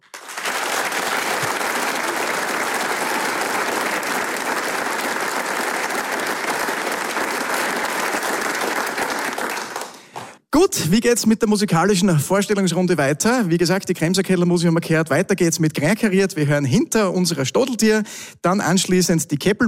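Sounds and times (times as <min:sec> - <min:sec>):
audience cheering and applauding a folk music programme at a premiere in the Arbeiterheimsaal, Vonsdorf: 0:00.0 - 0:10.4
speech: 0:10.6 - 0:19.6.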